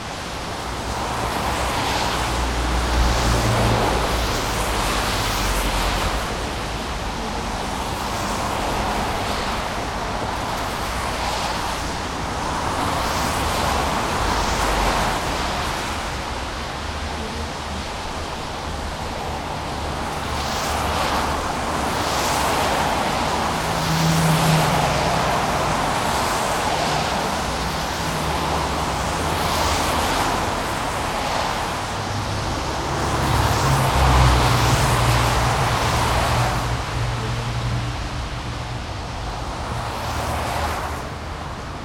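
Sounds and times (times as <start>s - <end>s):
city road traffic in the rain: 0.0s - 41.8s.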